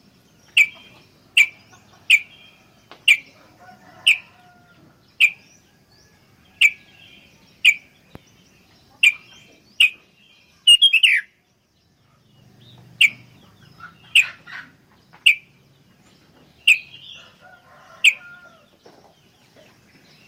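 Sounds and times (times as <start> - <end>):
sooty-headed bulbul song: 0.0 - 20.2.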